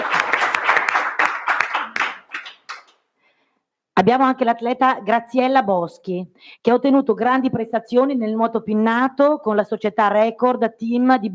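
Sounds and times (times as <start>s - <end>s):
crowd applause for an athlete: 0.0s - 2.9s
speech: 4.0s - 11.3s.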